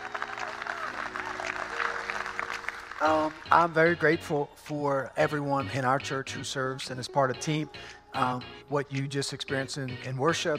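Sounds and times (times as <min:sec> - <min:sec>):
audience clapping: 0:00.0 - 0:04.2
speech: 0:03.0 - 0:10.5.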